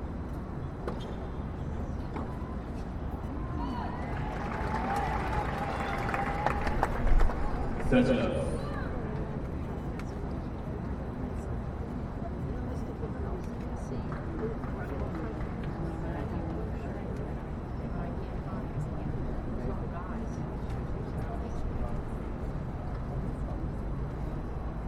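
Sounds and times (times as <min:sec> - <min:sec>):
crowd babble at the US Open tennis championships: 0:00.0 - 0:24.8
crowd cheering: 0:03.4 - 0:08.8.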